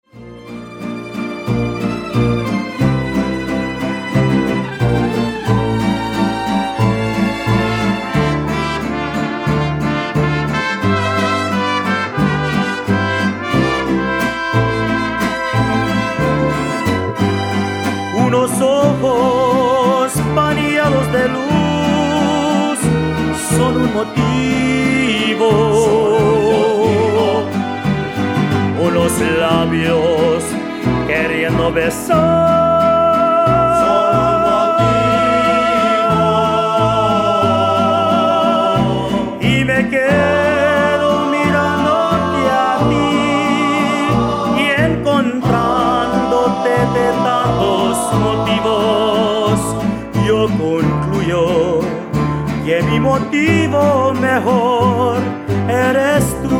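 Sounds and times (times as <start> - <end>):
mariachi music: 0.0 - 56.5.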